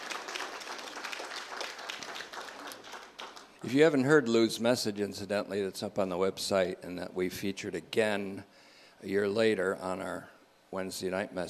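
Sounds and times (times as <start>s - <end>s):
audience applause welcoming a newly married couple: 0.0s - 3.6s
speech: 3.6s - 11.4s.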